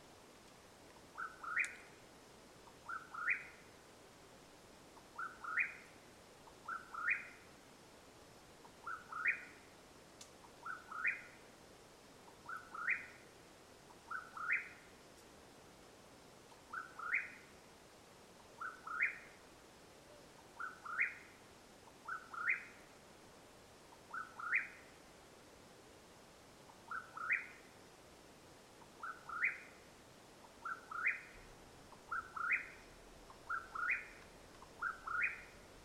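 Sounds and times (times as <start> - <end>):
Mexican whip-poor-will whistled calls: 1.2 - 1.9, 2.8 - 3.6, 5.2 - 5.9, 6.6 - 7.4, 8.8 - 9.6, 10.6 - 11.4, 12.4 - 13.2, 14.1 - 14.8, 16.7 - 17.5, 18.6 - 19.4, 20.6 - 21.4, 22.0 - 22.8, 24.1 - 24.9, 26.9 - 27.7, 29.0 - 29.8, 30.6 - 34.2, 34.8 - 35.6.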